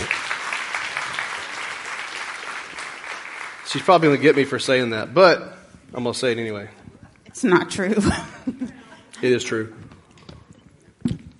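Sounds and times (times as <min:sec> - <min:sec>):
audience applause: 0:00.0 - 0:04.9
speech: 0:03.7 - 0:06.8, 0:07.4 - 0:09.8.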